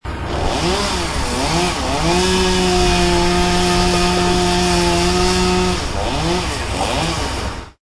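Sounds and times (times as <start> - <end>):
saw cutting: 0.1 - 7.8.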